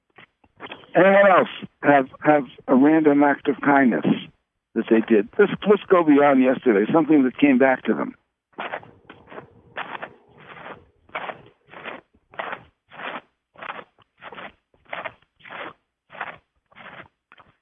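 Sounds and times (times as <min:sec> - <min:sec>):
speech: 0:01.0 - 0:08.2
person chewing: 0:08.6 - 0:17.6.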